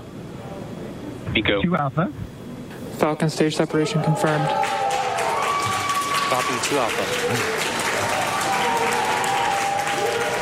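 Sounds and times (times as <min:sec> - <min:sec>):
speech: 0:01.3 - 0:02.3, 0:03.0 - 0:04.8, 0:06.3 - 0:08.2
NASA mission control crew cheering and applauding: 0:04.0 - 0:10.4.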